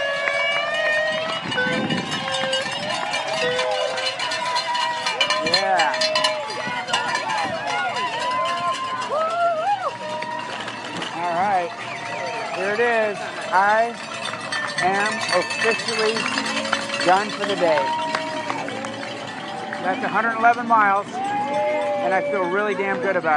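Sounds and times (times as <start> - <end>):
crowd cheering at a race finish: 0.0 - 23.3
ringing cowbell-like clatter: 0.0 - 23.3
speech: 14.8 - 18.0, 19.8 - 21.2, 22.0 - 23.3.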